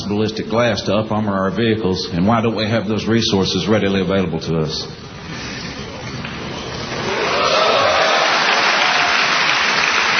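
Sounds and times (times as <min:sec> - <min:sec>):
speech: 0:00.1 - 0:05.5
crowd of mostly National Guard and Reserve soldiers cheering and applauding: 0:06.2 - 0:10.1.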